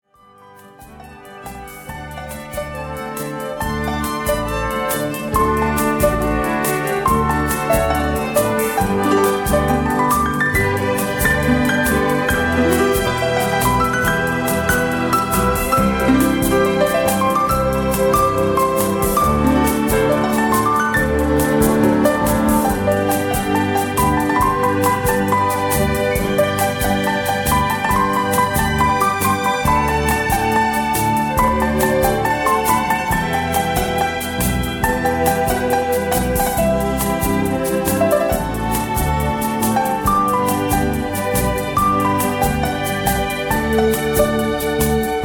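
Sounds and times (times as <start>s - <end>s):
piano: 0.0s - 45.2s.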